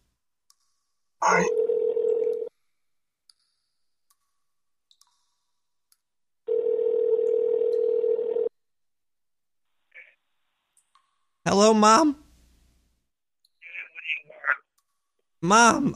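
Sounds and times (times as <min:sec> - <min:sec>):
speech: 0:01.2 - 0:01.6, 0:11.5 - 0:12.2, 0:15.4 - 0:15.9
telephone dial tone: 0:01.4 - 0:02.5, 0:06.5 - 0:08.5.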